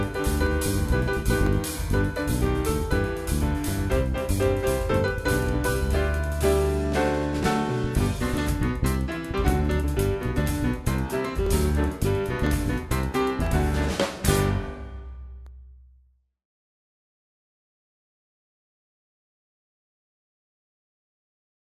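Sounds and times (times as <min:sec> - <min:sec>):
Christmas song: 0:00.0 - 0:15.5.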